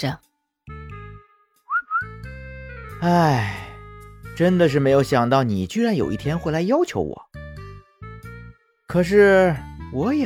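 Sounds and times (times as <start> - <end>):
speech: 0.0 - 0.3, 3.0 - 3.6, 4.4 - 7.3, 8.9 - 10.2
person whistling: 1.7 - 2.3.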